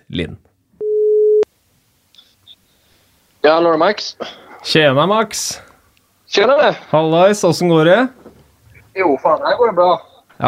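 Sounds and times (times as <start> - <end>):
speech: 0.1 - 0.5, 3.4 - 5.7, 6.3 - 8.2, 9.0 - 10.4
telephone ringing tone while placing a call: 0.8 - 1.4.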